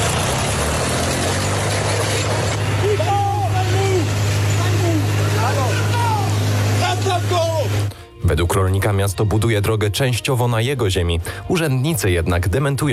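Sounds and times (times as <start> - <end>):
tractor engine droning during road destruction: 0.0 - 9.4
indistinct voices calling out: 2.6 - 7.9
speech: 8.3 - 12.9.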